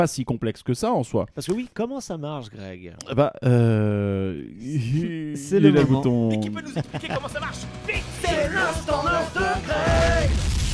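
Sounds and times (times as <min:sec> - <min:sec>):
speech: 0:00.0 - 0:10.4
laughter: 0:04.7 - 0:07.7
explosion sound effect from a ride: 0:09.8 - 0:10.7.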